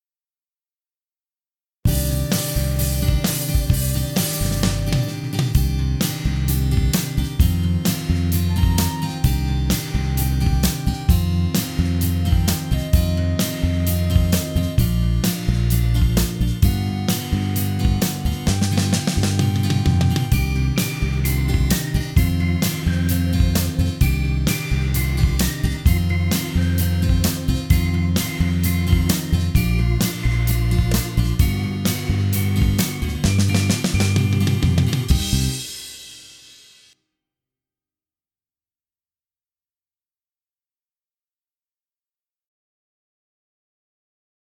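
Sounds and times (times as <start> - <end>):
backing track: 1.9 - 36.9.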